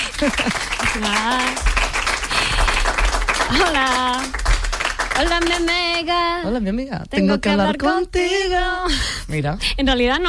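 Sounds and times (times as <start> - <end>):
crowd applauding: 0.0 - 6.0
speech: 0.2 - 1.8, 3.5 - 4.5, 5.2 - 10.2.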